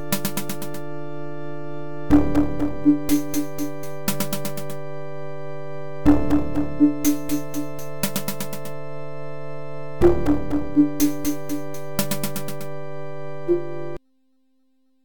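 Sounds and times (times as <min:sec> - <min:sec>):
DOS game over jingle: 0:02.1 - 0:04.2, 0:06.1 - 0:08.1, 0:10.0 - 0:12.0.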